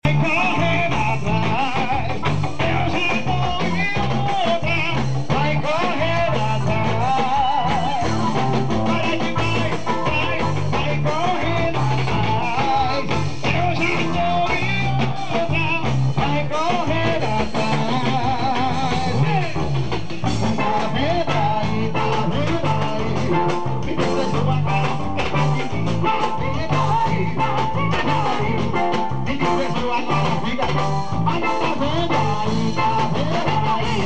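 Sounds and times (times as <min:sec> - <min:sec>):
live forro music: 0:00.0 - 0:34.0.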